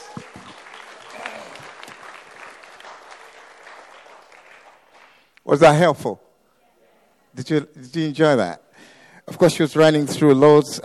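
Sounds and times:
audience clapping: 0.0 - 5.4
speech: 5.5 - 6.2, 7.4 - 10.8.

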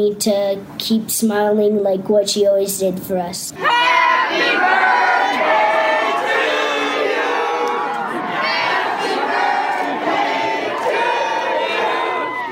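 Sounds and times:
speech: 0.0 - 5.6
crowd of schoolchildren cheering and shrieking: 3.6 - 12.5.

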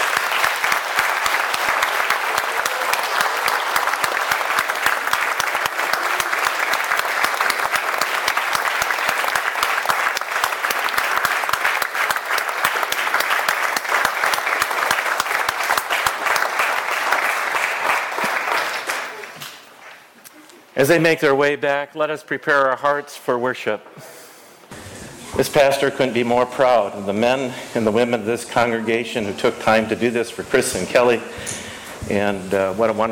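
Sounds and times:
audience applause: 0.0 - 19.4
speech: 20.8 - 24.1, 25.4 - 33.1.

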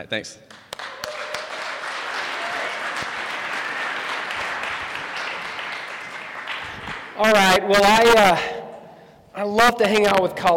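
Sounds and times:
speech: 0.0 - 0.9, 7.2 - 8.5, 9.4 - 10.5
audience clapping welcoming a preaching minister: 0.5 - 8.1.

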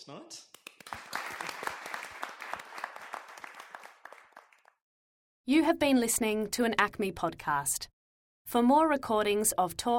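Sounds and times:
speech: 0.0 - 1.1, 5.5 - 9.9
audience applauding: 0.6 - 4.8.

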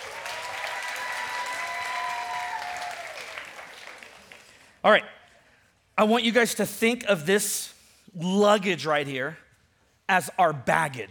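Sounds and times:
audience round of applause: 0.0 - 4.7
speech: 4.8 - 5.2, 6.0 - 9.4, 10.1 - 11.0.

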